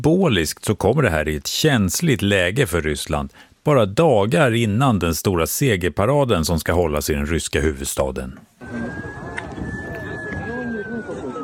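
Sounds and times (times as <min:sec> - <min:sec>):
speech: 0:00.0 - 0:09.1
outdoor noise: 0:00.0 - 0:11.4
emergency vehicle siren: 0:08.6 - 0:11.4
murmuring voices: 0:08.6 - 0:11.4.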